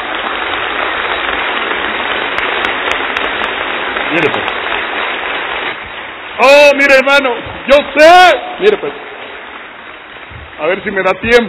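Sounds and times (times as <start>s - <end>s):
audience applause: 0.0s - 6.3s
speech: 4.2s - 4.4s, 6.4s - 9.0s, 10.6s - 11.4s.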